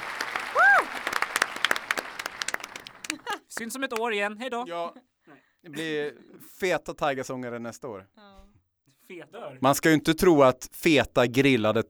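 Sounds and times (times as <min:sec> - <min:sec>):
applause: 0:00.0 - 0:04.2
laughter: 0:01.7 - 0:04.0
speech: 0:03.6 - 0:05.1, 0:05.7 - 0:08.2, 0:09.1 - 0:11.8.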